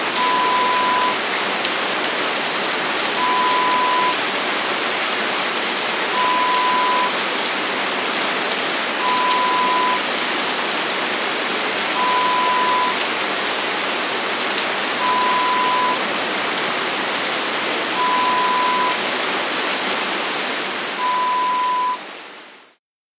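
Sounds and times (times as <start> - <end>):
heavy rain: 0.0 - 22.8.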